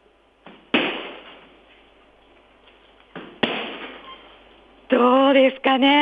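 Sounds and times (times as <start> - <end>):
kicks landing on a hard punching bag: 0.5 - 1.4, 3.2 - 4.0
speech: 5.0 - 5.9.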